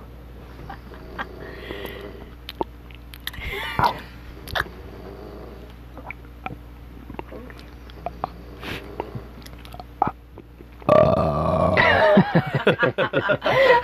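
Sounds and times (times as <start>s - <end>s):
person snoring: 0.9s - 2.3s, 3.4s - 5.7s, 7.2s - 9.4s, 10.9s - 12.0s
laughter: 11.8s - 13.8s.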